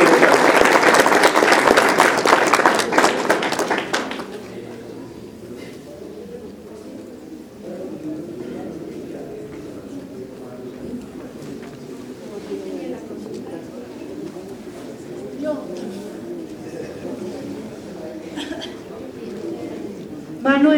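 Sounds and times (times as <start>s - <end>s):
audience at a panel discussion in Bolivia applauding: 0.0s - 4.7s
murmur of voices: 0.0s - 20.7s
laughter: 16.5s - 19.2s.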